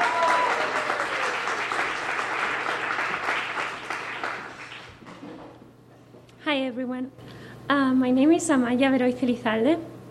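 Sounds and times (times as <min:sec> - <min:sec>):
audience applause: 0:00.0 - 0:05.0
speech: 0:06.6 - 0:09.9.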